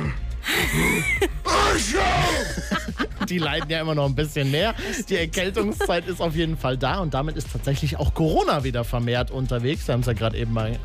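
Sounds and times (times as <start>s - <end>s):
man groaning theatrically with man-flu: 0.0s - 2.9s
laughter: 0.5s - 6.2s
speech: 0.7s - 10.8s.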